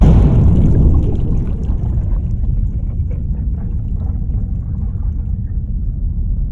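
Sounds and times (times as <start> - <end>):
crash: 0.0 - 6.4.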